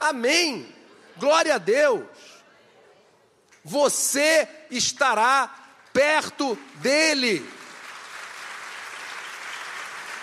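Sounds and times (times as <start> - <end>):
speech: 0.1 - 2.3, 3.6 - 7.6
crowd clapping: 5.8 - 10.2.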